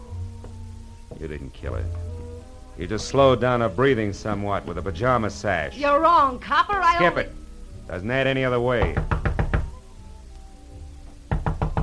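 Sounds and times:
speech: 0:01.2 - 0:02.1, 0:02.8 - 0:09.2
knocking on a door: 0:08.8 - 0:09.8, 0:11.2 - 0:11.8.

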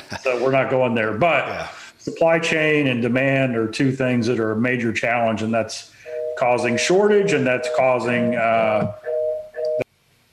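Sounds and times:
speech: 0:00.2 - 0:09.1
phone ringing or notification: 0:06.0 - 0:09.8.

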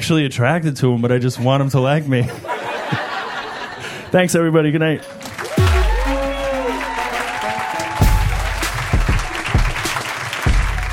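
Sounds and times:
speech: 0:00.0 - 0:03.0, 0:04.1 - 0:05.2
laughter: 0:02.2 - 0:04.1
comedy audience applauding a comedian: 0:05.1 - 0:10.9.

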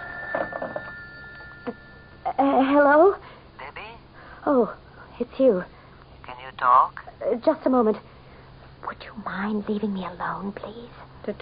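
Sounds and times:
telephone bell ringing: 0:00.0 - 0:02.3
steady high hum: 0:00.0 - 0:11.4
speech: 0:02.5 - 0:03.3, 0:04.5 - 0:05.8, 0:06.6 - 0:08.1, 0:09.0 - 0:11.4.

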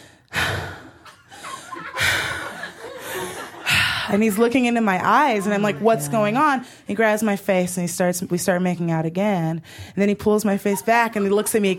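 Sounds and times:
imitated heavy breathing: 0:00.0 - 0:04.2, 0:05.4 - 0:06.9
laughter: 0:01.0 - 0:06.8, 0:10.6 - 0:11.7
speech: 0:04.1 - 0:11.7.

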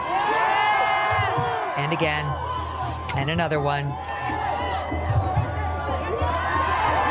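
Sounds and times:
large crowd roaring and cheering: 0:00.0 - 0:07.0
speech: 0:01.9 - 0:05.0.

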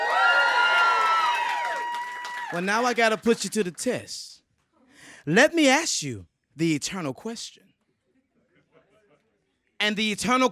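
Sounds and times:
audience cheering and whooping: 0:00.0 - 0:02.8
speech: 0:02.5 - 0:04.4, 0:05.2 - 0:07.7, 0:09.8 - 0:10.4.

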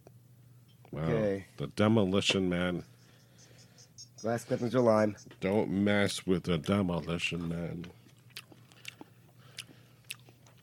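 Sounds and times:
low steady hum: 0:00.0 - 0:10.6
speech: 0:01.0 - 0:02.9, 0:04.2 - 0:08.0
crunchy chewing: 0:07.8 - 0:10.6.

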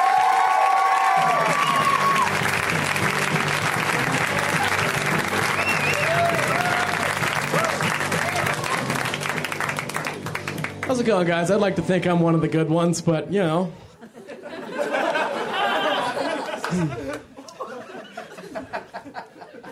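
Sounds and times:
audience whooping at a comedy show: 0:00.0 - 0:10.5
audience applause at a comedy show: 0:00.0 - 0:11.0, 0:15.0 - 0:17.4
speech: 0:11.0 - 0:13.8
laughter: 0:13.8 - 0:19.6.

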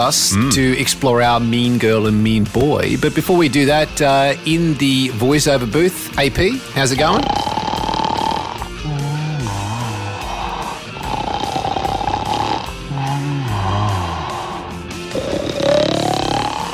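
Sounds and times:
speech: 0:00.0 - 0:07.8
man imitating snoring as vocal warm-up: 0:00.1 - 0:00.8, 0:06.8 - 0:16.7.

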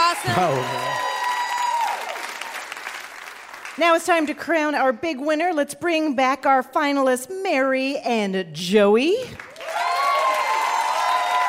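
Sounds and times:
studio audience applauding: 0:00.0 - 0:04.4, 0:09.3 - 0:11.4
speech: 0:00.2 - 0:01.1, 0:03.8 - 0:09.5.

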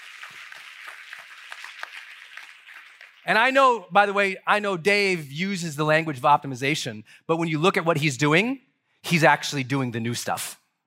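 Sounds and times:
round of applause: 0:00.0 - 0:03.6
speech: 0:03.2 - 0:10.6.

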